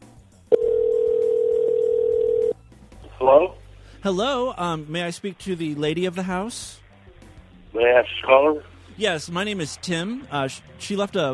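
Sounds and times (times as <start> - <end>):
telephone dial tone: 0.5 - 2.6
speech: 3.2 - 6.8, 7.8 - 11.3.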